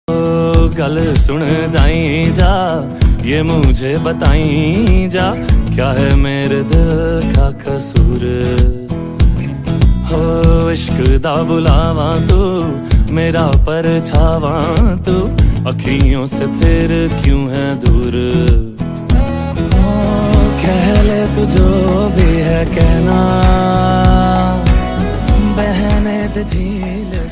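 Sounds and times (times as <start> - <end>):
romantic song: 0.1 - 27.3.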